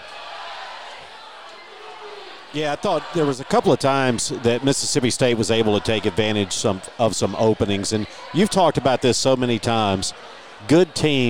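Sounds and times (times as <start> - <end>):
stadium crowd noise after the game: 0.0 - 11.2
speech: 2.5 - 11.2.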